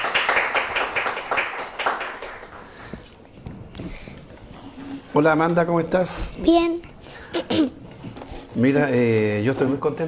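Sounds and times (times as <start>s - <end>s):
applause for a guest: 0.0s - 2.9s
room noise: 0.0s - 10.0s
speech: 5.2s - 7.8s, 8.6s - 10.0s.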